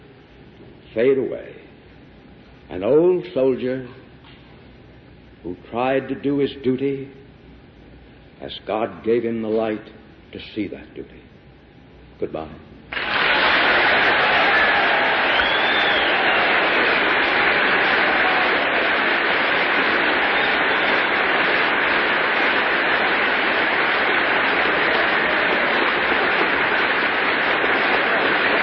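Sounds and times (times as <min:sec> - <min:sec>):
speech: 0:01.0 - 0:01.6, 0:02.7 - 0:04.0, 0:05.4 - 0:07.2, 0:08.4 - 0:11.2, 0:12.2 - 0:12.7
applause from a large audience: 0:12.9 - 0:28.6.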